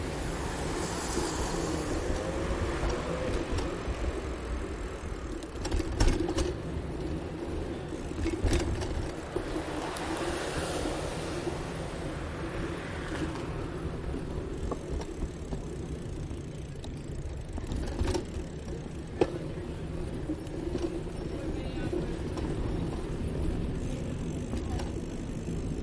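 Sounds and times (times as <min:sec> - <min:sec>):
passing vehicles: 0:00.0 - 0:25.8
traffic rumble in central Bogotá: 0:00.0 - 0:25.8
voices: 0:19.0 - 0:25.4.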